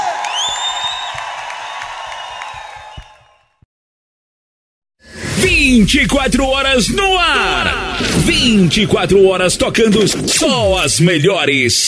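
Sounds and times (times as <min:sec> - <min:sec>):
crowd applauding and cheering with whoops: 0:00.0 - 0:03.6
burst of noise: 0:05.1 - 0:11.1
speech: 0:05.7 - 0:11.8.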